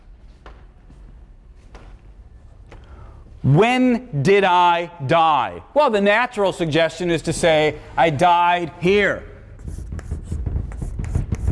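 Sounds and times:
speech: 3.4s - 9.3s
scratchy writing strokes hand-drawing a little star: 9.6s - 11.4s.

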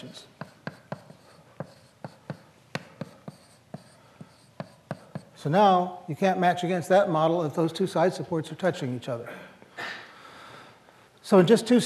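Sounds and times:
speech: 0.0s - 0.3s, 5.4s - 9.5s, 11.3s - 11.8s
pen or marker scratching marks on a board during a lecture: 0.0s - 5.5s
faint hiss: 0.0s - 11.8s.

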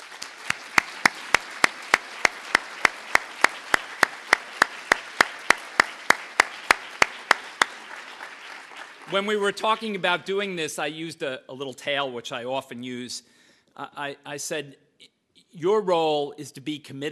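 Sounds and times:
audience applause: 0.0s - 10.2s
speech: 9.1s - 17.1s.

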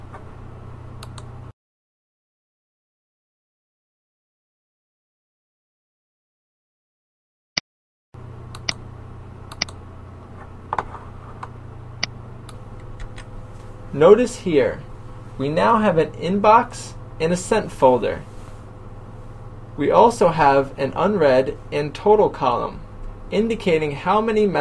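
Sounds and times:
computer mouse click in an online course tool: 1.0s - 1.3s, 8.5s - 8.8s, 9.5s - 9.8s
speech: 14.0s - 18.3s, 19.8s - 24.5s.

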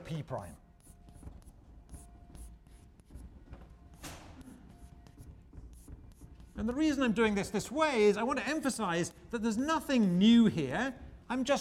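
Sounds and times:
scratchy writing on a board during a lecture: 0.0s - 7.7s
speech: 0.1s - 0.6s, 6.6s - 11.5s.

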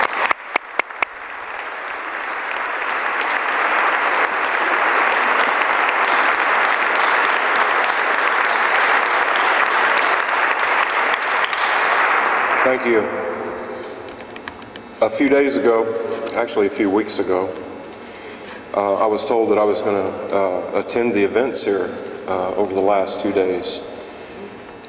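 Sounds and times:
audience applause welcoming a speaker at an event: 0.0s - 14.2s
speech: 12.8s - 13.2s, 15.1s - 17.7s, 18.8s - 23.9s.

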